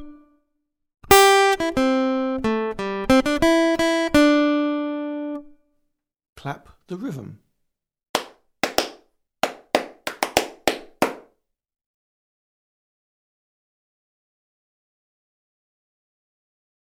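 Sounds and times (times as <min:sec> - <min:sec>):
acoustic guitar rhythm test: 0:01.1 - 0:05.0, 0:08.2 - 0:11.3.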